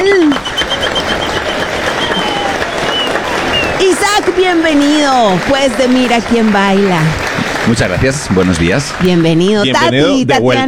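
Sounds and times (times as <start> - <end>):
faint whistle-like tone: 0.0 - 6.6
laughter: 0.0 - 9.8
crowd applauding welcoming guests: 0.0 - 9.9
speech: 4.5 - 10.6.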